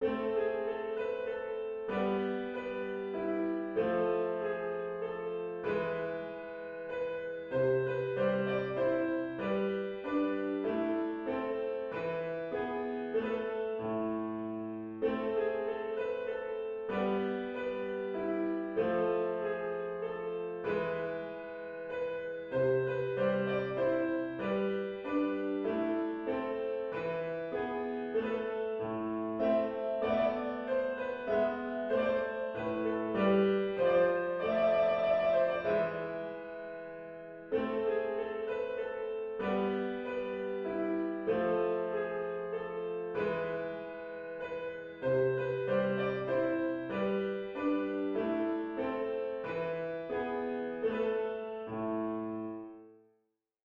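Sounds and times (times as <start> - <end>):
minor-key minuet: 0.0 - 53.0.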